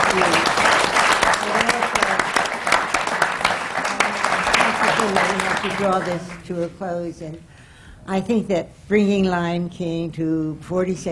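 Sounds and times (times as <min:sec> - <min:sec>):
audience applause: 0:00.0 - 0:06.4
speech: 0:05.6 - 0:11.1.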